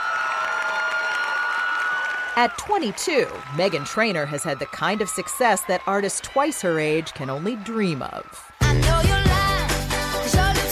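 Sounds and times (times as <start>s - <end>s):
crowd cheering and applause: 0.0s - 10.7s
speech: 2.4s - 8.5s.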